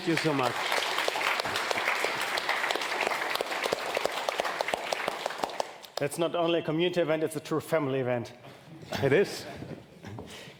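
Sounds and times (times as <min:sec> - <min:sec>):
speech: 0:00.0 - 0:00.8, 0:06.0 - 0:09.6
applause: 0:00.0 - 0:06.2.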